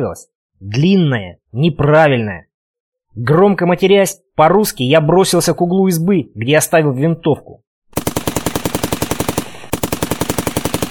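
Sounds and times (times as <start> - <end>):
speech: 0.0 - 2.5, 3.2 - 7.6
machine gun burst: 8.0 - 10.8.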